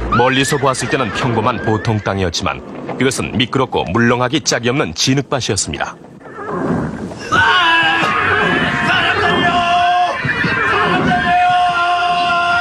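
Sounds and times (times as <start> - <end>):
horses whinnying and neighing in chaos: 0.0 - 2.9, 6.0 - 12.5
speech: 0.2 - 6.7
crowd shouting and commotion: 7.3 - 12.5.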